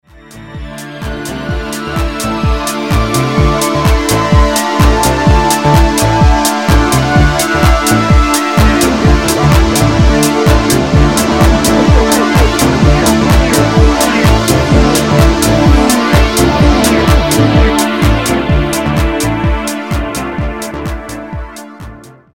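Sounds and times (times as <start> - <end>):
electric wave sound: 0.3 - 21.2.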